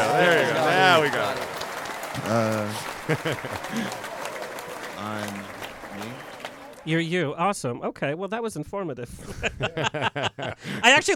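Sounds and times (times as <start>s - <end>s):
applause sound effect: 0.0s - 6.9s
speech: 2.2s - 4.1s, 5.0s - 11.1s
laughter: 2.7s - 4.2s, 9.2s - 10.8s.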